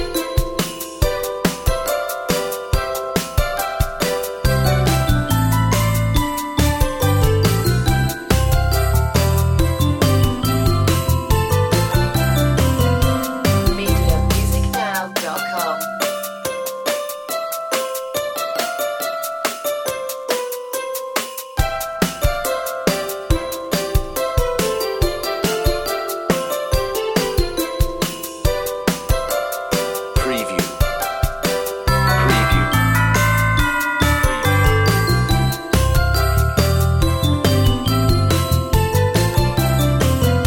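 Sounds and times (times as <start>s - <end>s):
on-hold music: 0.0s - 40.4s.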